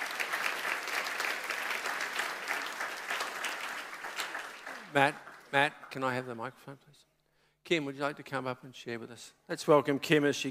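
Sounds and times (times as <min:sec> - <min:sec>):
audience applause: 0:00.0 - 0:06.2
speech: 0:04.9 - 0:07.1, 0:07.7 - 0:10.4.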